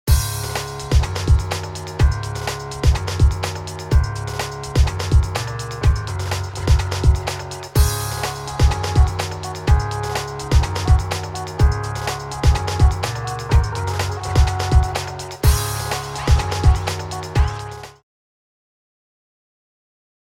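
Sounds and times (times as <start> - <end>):
kick drum: 0.1 - 4.2, 4.8 - 7.2, 7.8 - 9.9, 10.5 - 11.8, 12.4 - 15.7, 16.3 - 16.8.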